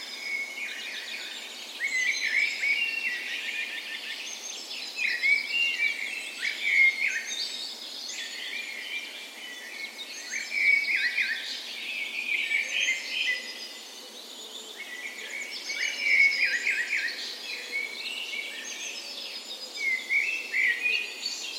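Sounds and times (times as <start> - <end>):
many birds in a dawn chorus: 0.0 - 21.5.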